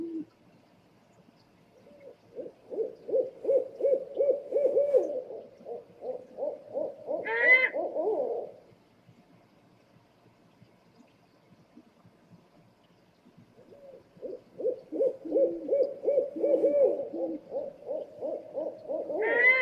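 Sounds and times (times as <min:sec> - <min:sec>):
scops owl hooting: 0:01.8 - 0:08.6, 0:13.7 - 0:19.5.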